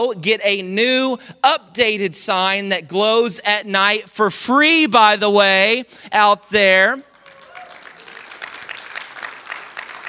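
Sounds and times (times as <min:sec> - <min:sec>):
speech: 0:00.0 - 0:07.1
audience applauding: 0:07.1 - 0:10.0.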